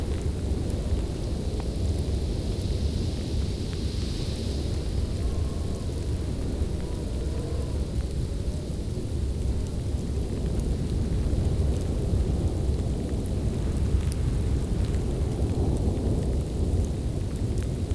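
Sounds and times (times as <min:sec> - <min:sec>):
icy snowstorm wind: 0:00.0 - 0:17.9.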